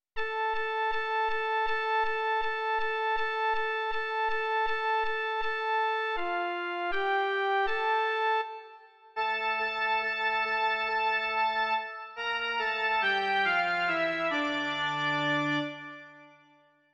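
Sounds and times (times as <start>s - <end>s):
instrumental melody: 0.2s - 16.7s.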